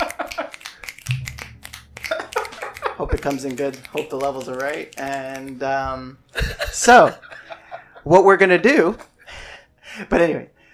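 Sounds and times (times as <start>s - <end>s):
laughter: 0.0s - 0.6s, 2.0s - 3.4s, 6.4s - 8.1s
finger snaps: 0.0s - 5.6s
speech: 3.0s - 7.3s, 8.0s - 9.1s, 10.0s - 10.6s.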